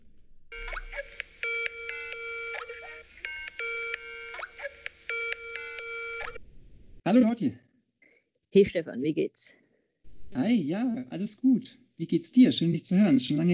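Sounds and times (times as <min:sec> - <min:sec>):
Skype call ringtone: 0:00.5 - 0:06.4
speech: 0:07.1 - 0:07.7, 0:08.5 - 0:09.6, 0:10.3 - 0:13.5.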